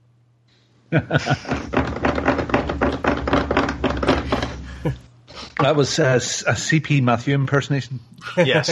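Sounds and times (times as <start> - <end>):
laughter: 0.9 - 1.7, 4.3 - 5.0, 8.2 - 8.7
speech: 0.9 - 1.9, 5.6 - 8.7
loud keyboard typing: 1.1 - 4.9.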